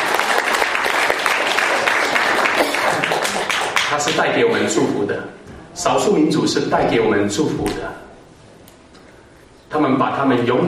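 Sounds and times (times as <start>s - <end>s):
audience applause welcoming a guest at a gathering of co-workers: 0.0s - 4.2s
speech: 3.9s - 8.0s, 9.7s - 10.6s.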